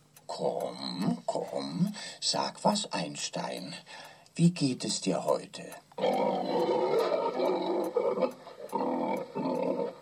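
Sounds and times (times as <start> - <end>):
speech: 0.3 - 6.9
pig grunting and snorting: 6.0 - 10.0.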